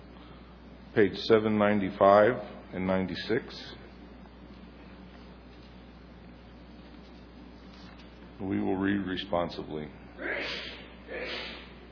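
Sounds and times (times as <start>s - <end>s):
speech: 1.0s - 3.8s, 8.4s - 10.6s
sneeze: 10.2s - 11.8s.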